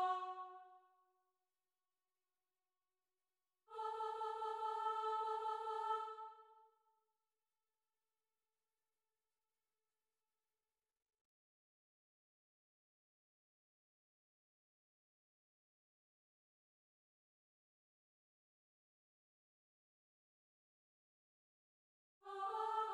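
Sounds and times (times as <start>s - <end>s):
soprano singing: 0.0s - 0.7s, 3.7s - 6.6s, 22.3s - 22.9s.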